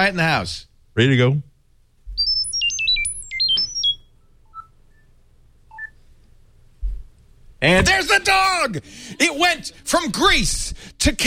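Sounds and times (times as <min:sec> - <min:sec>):
speech: 0:00.0 - 0:01.5, 0:07.6 - 0:11.2
robotic electronic chirps transmitting data: 0:02.1 - 0:05.1, 0:05.7 - 0:06.0.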